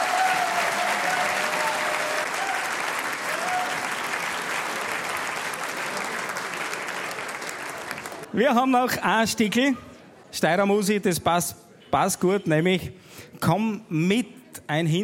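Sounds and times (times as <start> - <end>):
audience clapping: 0.0 - 8.3
speech: 8.4 - 15.0.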